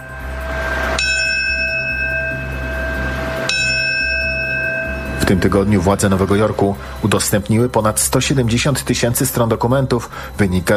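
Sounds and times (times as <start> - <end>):
large memorial bell tolling: 0.0 - 9.1
low outdoor rumble: 0.0 - 9.8
speech: 5.3 - 10.7.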